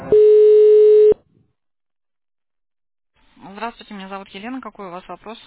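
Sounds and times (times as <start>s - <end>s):
telephone tones while a call is transferred to an operator: 0.1s - 1.1s
speech: 4.6s - 5.4s.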